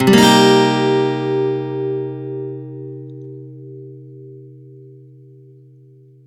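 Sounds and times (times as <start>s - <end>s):
acoustic guitar C minor seventh downstroke: 0.0s - 6.2s.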